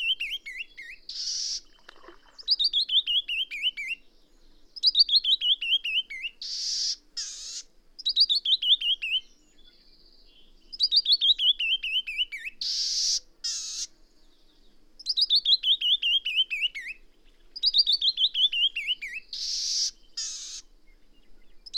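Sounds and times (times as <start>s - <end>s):
bird song: 0.0s - 21.7s.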